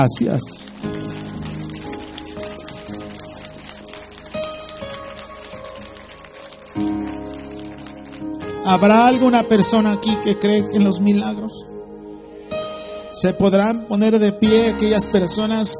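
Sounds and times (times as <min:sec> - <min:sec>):
speech: 0:00.0 - 0:01.0, 0:08.7 - 0:11.7, 0:13.2 - 0:15.7
audience applause: 0:00.0 - 0:08.6.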